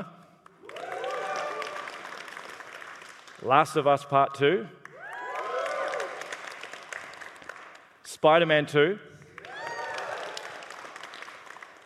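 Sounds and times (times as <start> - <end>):
whooping cheers: 0.6 - 2.2, 4.9 - 6.4, 9.4 - 10.7
audience applause: 0.6 - 3.4, 5.0 - 7.8, 9.4 - 11.8
speech: 3.4 - 4.8, 8.2 - 9.1.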